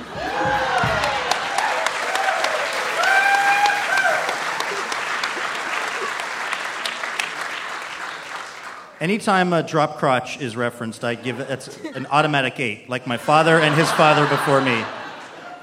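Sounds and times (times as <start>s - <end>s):
crowd cheering: 0.0s - 9.0s, 13.2s - 15.6s
laughter: 4.1s - 6.8s, 11.0s - 15.6s
speech: 9.0s - 15.0s.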